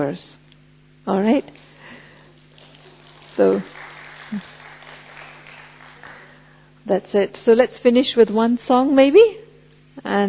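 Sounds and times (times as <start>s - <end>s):
speech: 0.0s - 0.4s, 1.0s - 1.6s, 3.4s - 4.5s, 6.9s - 9.4s, 10.0s - 10.2s
group clapping for themselves at the close of a gathering: 1.6s - 6.7s.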